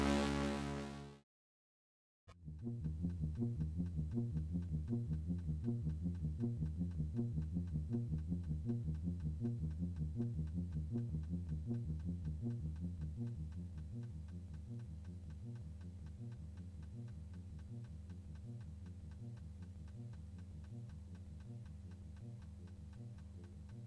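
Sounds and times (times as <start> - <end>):
Moog Modular synthesizer: 0.0 - 1.2, 2.5 - 19.4.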